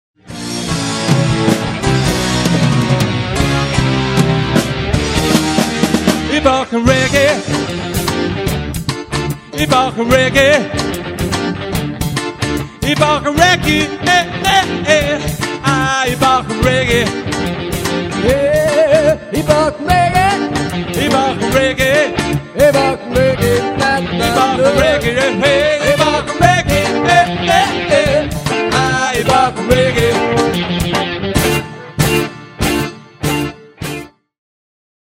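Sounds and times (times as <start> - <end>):
reggae music: 0.2 - 34.2.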